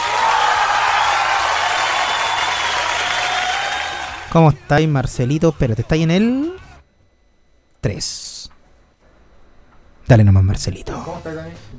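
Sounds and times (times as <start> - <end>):
applause from a group: 0.0 - 4.4
speech: 4.4 - 6.6, 7.8 - 8.4, 10.1 - 11.7.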